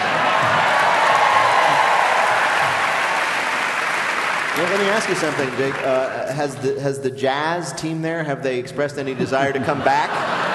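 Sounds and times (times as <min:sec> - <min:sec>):
live audience cheering and applause: 0:00.0 - 0:06.8
speech: 0:04.6 - 0:10.3
laughter: 0:09.0 - 0:10.5.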